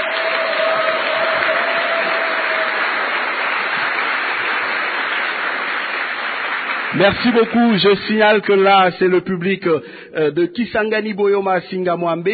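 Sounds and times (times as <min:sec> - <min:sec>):
audience applauding in a hall: 0:00.0 - 0:08.7
speech: 0:07.0 - 0:12.3.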